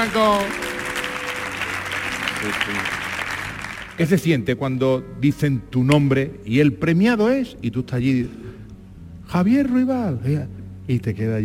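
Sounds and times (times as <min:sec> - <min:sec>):
speech: 0:00.0 - 0:00.7, 0:02.4 - 0:03.0, 0:04.0 - 0:08.4, 0:09.3 - 0:11.4
audience applause: 0:00.0 - 0:04.0.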